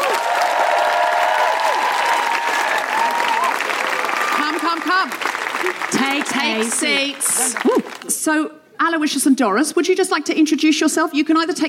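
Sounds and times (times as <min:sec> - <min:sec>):
whoops: 0:00.0 - 0:04.4, 0:07.6 - 0:08.0
live audience applause welcoming guests on stage: 0:00.0 - 0:08.1
speech: 0:04.9 - 0:11.6.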